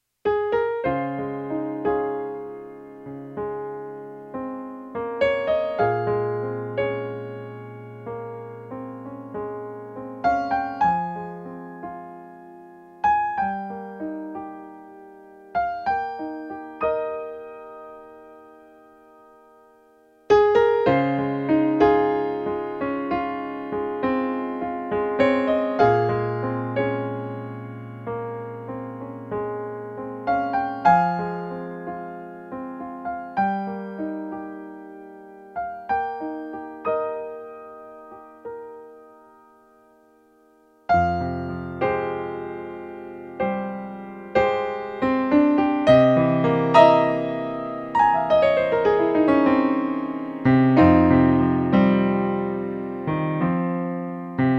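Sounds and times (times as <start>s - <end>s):
solo piano: 0.0s - 54.5s.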